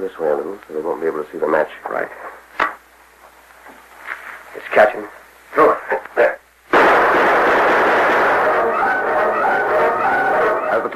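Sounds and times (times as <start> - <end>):
speech: 0.0 - 2.4, 4.7 - 5.7
dramatized gunfire from outlaws: 6.7 - 10.6.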